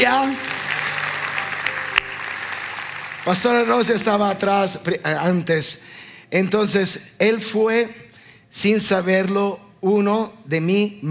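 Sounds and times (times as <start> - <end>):
audience applause: 0.0 - 4.6
speech: 3.3 - 11.0.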